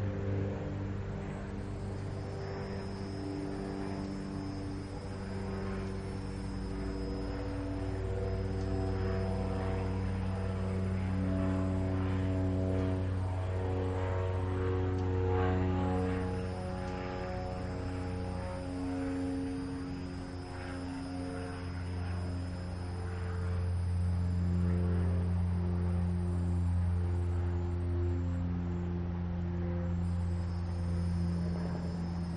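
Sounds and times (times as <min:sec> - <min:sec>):
aircraft flying by a residence in the early morning: 0:00.0 - 0:32.3.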